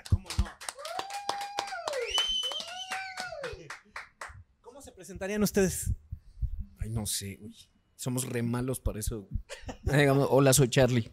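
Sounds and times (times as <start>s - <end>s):
small group clapping: 0.0s - 4.4s
people whooping and cheering: 0.7s - 3.7s
speech: 5.1s - 6.0s, 6.9s - 11.1s.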